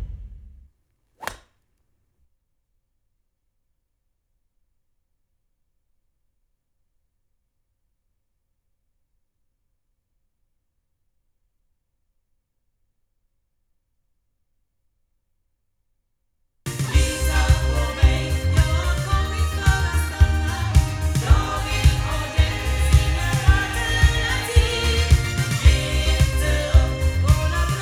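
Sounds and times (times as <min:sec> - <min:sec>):
loudspeakers: 0:16.7 - 0:27.8.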